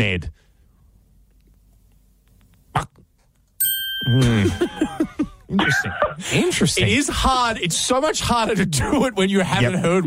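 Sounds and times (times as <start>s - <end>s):
speech: 0.0s - 0.4s, 4.0s - 10.0s
microwave ding: 3.6s - 4.8s
laughter: 4.1s - 7.2s.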